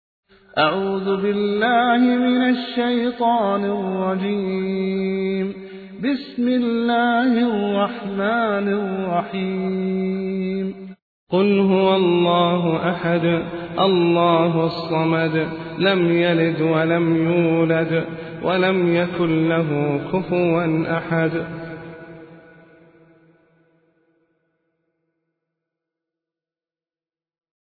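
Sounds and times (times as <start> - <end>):
person reciting a sura: 0.4 - 22.9.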